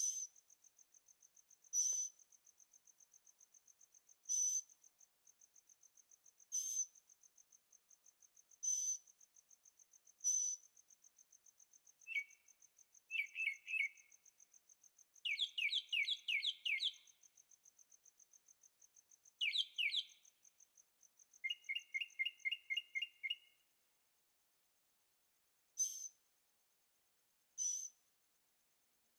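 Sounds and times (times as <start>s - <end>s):
bird chirping: 12.1s - 14.2s, 15.2s - 17.3s, 19.4s - 20.4s, 21.4s - 23.6s.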